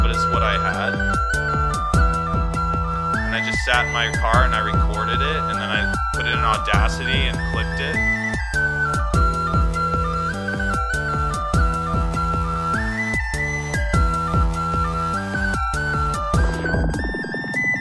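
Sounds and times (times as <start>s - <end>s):
cheap-sounding whistle recorded in a car: 0.0s - 17.7s
speech: 3.7s - 8.2s.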